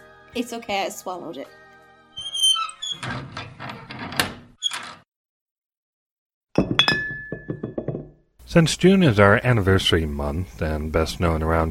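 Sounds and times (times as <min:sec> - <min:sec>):
speech: 0:00.4 - 0:01.6, 0:08.5 - 0:11.6
glass liqueur bottle clinking while opened: 0:06.6 - 0:08.2.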